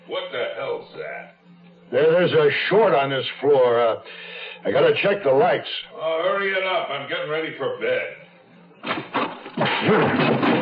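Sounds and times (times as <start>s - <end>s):
speech: 0.1s - 8.2s, 9.8s - 10.4s
door slammed against a man: 8.8s - 10.5s
noisy crash with a groaning tone: 8.8s - 10.5s.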